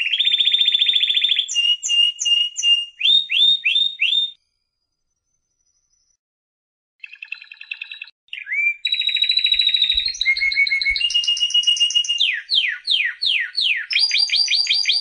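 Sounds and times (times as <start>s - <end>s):
canary song: 0.0s - 6.2s, 7.0s - 14.9s.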